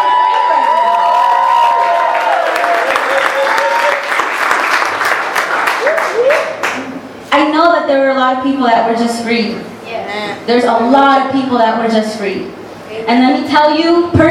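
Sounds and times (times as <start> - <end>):
crowd whooping and shouting: 0.0 - 4.3, 5.8 - 6.6
crowd applauding: 0.0 - 7.0
speech: 7.8 - 9.7, 10.4 - 14.2.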